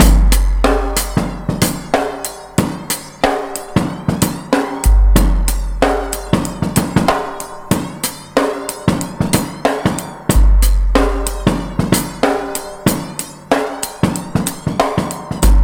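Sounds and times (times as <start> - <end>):
breakbeat: 0.0 - 15.6.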